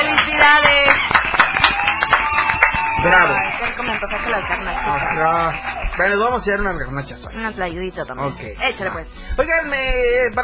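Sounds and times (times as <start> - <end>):
group applauding: 0.0 - 6.7
speech: 3.0 - 10.4.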